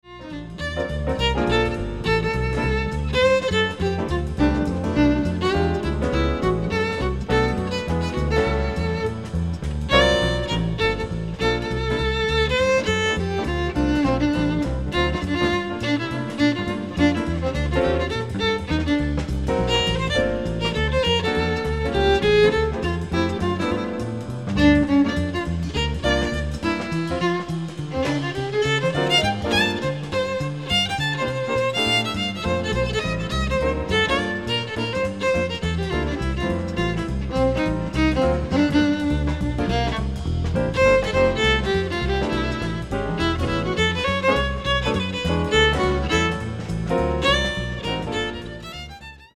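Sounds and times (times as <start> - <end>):
jazz music: 0.0 - 49.3.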